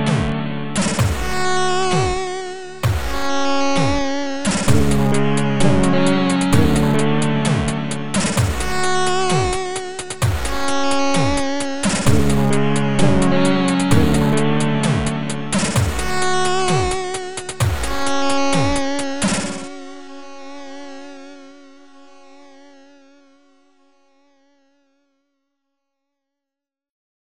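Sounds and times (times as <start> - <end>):
C64 drums: 0.0 - 20.0.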